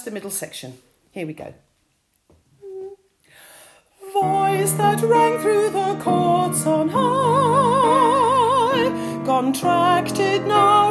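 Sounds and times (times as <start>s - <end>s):
altos singing middle section: 4.0s - 10.8s.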